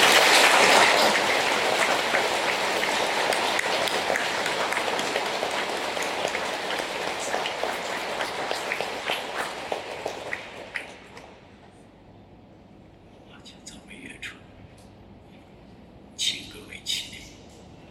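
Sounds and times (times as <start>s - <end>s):
crowd clapping applause: 0.0s - 11.3s.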